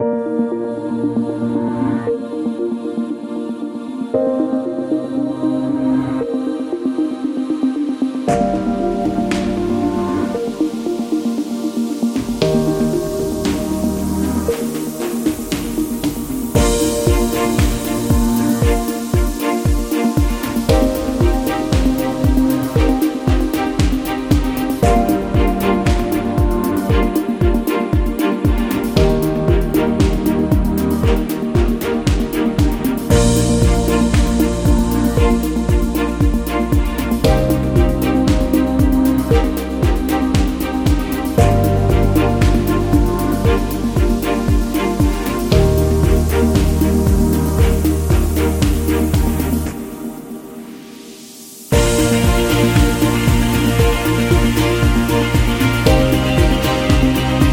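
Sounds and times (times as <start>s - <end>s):
corporate electronic music: 0.0s - 57.5s.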